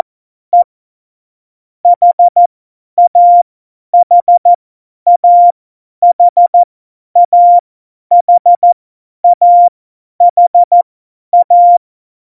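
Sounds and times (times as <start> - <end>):
CW morse code beeps: 1.9 - 3.4, 4.0 - 4.5, 5.1 - 6.6, 7.2 - 10.8, 11.4 - 11.8.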